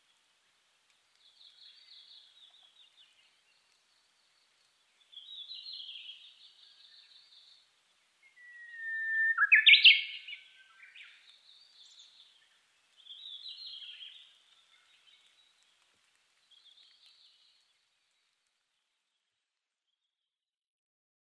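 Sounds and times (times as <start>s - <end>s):
Japanese bush warbler: 1.2s - 7.6s, 8.2s - 15.3s.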